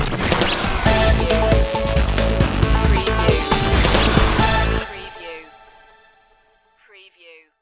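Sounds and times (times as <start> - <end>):
DIY music sting: 0.9 - 5.6.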